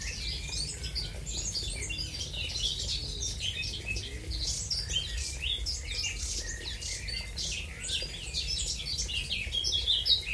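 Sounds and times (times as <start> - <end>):
many birds singing and chirping at Bottengoms, Wormingford, Essex: 0.0 - 10.3.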